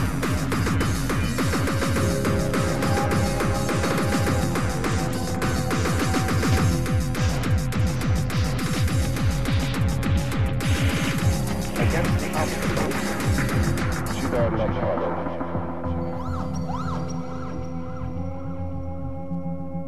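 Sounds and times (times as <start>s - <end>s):
brutal hardcore speed gabber music: 0.0s - 19.8s.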